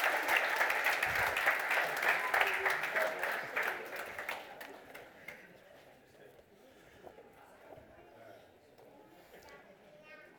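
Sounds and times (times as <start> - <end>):
audience applause: 0.0 - 5.0.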